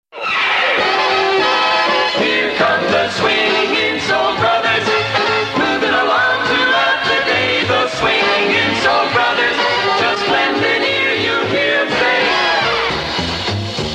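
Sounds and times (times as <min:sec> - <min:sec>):
swing soul jingle: 0:00.8 - 0:13.9.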